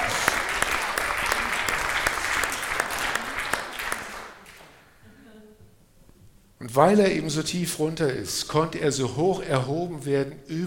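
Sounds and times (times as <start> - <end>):
audience applause: 0.0 - 4.8
speech: 6.8 - 10.6.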